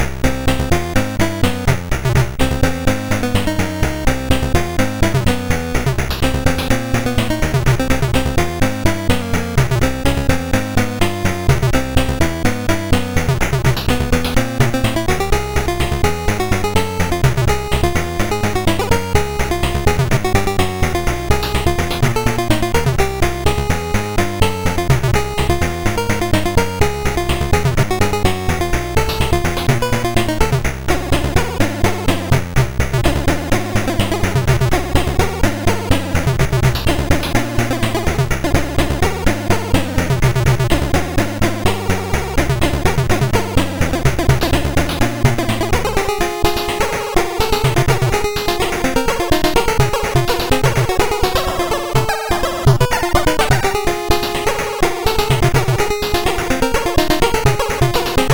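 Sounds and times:
chiptune fugue on MOS6581R4 sound chip: 0.0 - 58.3.

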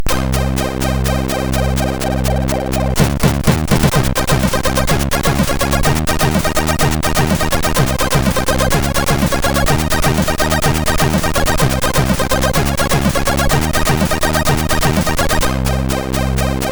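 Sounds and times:
house music on a MOS6581R3 SID chip: 0.0 - 16.7.

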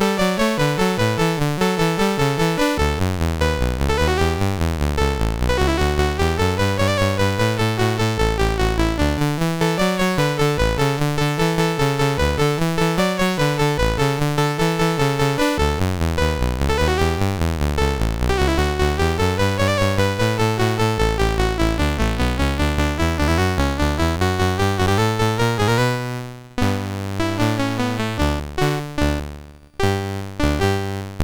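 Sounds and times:
MOS 6581 SID chip game music: 0.0 - 31.2.

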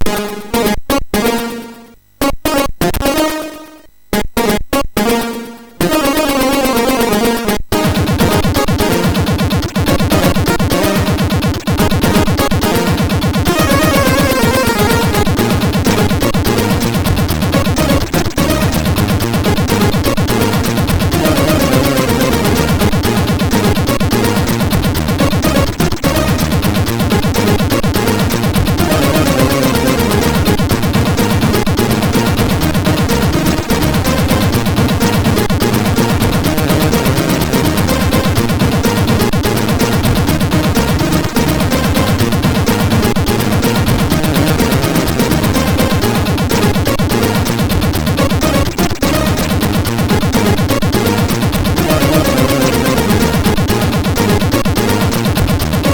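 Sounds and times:
MOS6581R3 SID chip game music: 0.0 - 55.9.

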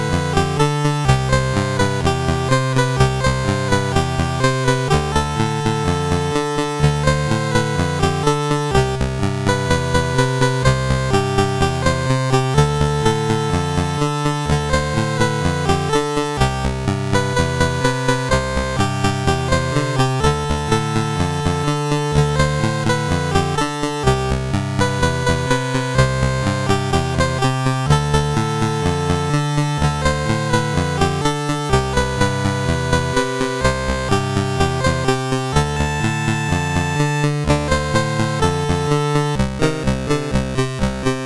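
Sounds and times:
chiptune music on a CSG 8580R5 SID chip: 0.0 - 41.2.

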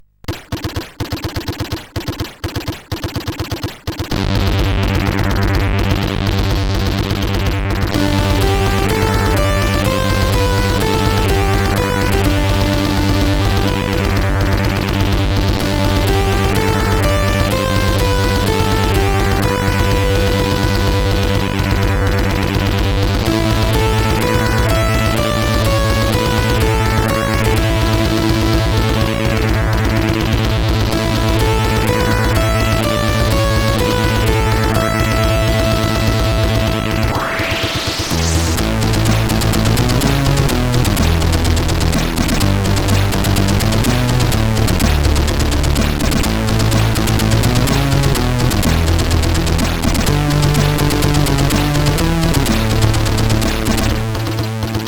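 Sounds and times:
CSG8580R5 SID chip war music: 0.2 - 54.8.

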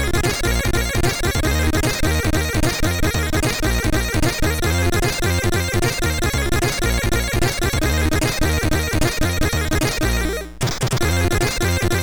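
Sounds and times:
chiptune music on a MOS6581R3 chip: 0.0 - 12.0.

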